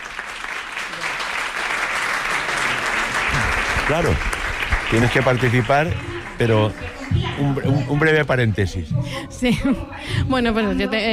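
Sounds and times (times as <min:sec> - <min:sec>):
applause: 0:00.0 - 0:08.4
speech: 0:03.9 - 0:11.1.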